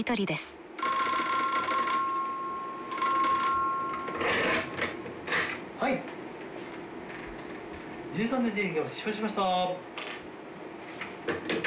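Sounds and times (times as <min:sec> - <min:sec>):
speech: 0:00.0 - 0:00.6, 0:05.8 - 0:06.1, 0:08.2 - 0:09.9
station bell ringing: 0:00.8 - 0:05.0
station telegraph tapping: 0:00.8 - 0:05.1.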